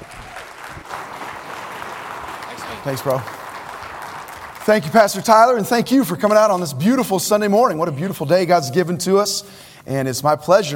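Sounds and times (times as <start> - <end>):
Baptist church congregation applauding a guest preacher: 0.0 - 7.1
speech: 2.8 - 3.4, 4.7 - 10.7.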